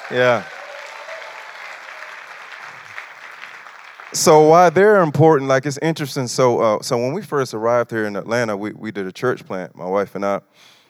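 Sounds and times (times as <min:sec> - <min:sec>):
audience hand clapping: 0:00.0 - 0:05.1
speech: 0:00.1 - 0:00.5, 0:04.1 - 0:10.8.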